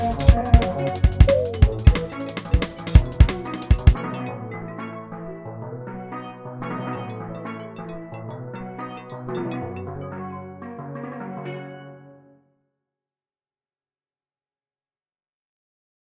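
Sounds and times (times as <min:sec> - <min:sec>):
caribbean beat: 0:00.0 - 0:04.0, 0:07.0 - 0:09.6.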